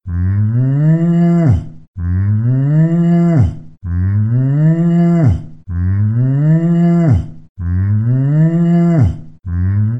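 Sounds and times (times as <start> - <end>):
cow mooing: 0.1 - 9.9.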